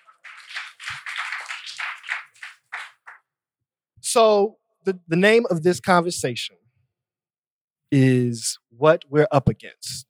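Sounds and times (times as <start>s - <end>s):
audience applause at a panel discussion: 0.0s - 3.2s
speech: 4.1s - 6.6s, 7.9s - 10.0s.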